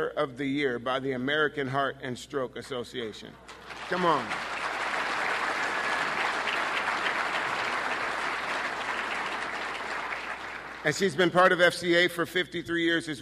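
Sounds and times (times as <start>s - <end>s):
speech: 0.0s - 4.6s, 10.8s - 13.2s
audience applause: 3.5s - 11.2s.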